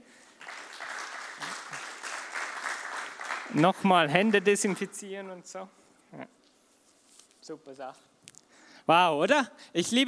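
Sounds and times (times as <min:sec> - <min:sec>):
audience applause: 0:00.0 - 0:05.0
speech: 0:03.5 - 0:06.4, 0:07.5 - 0:08.1, 0:08.9 - 0:10.0.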